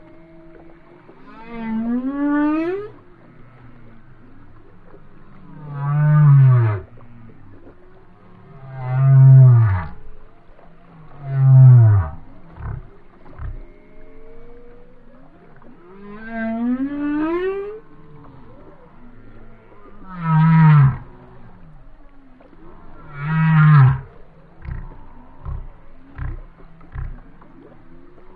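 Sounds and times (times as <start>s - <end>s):
whale song moans: 0.0s - 28.3s.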